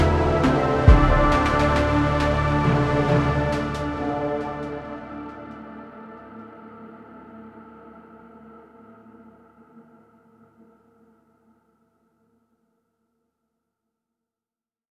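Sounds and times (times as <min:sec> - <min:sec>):
horns sounding: 0:00.0 - 0:05.4.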